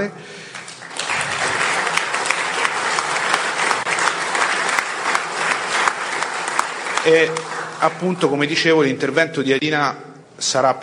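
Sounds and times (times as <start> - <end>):
audience applause: 0.5 - 8.4
speech: 7.0 - 10.8.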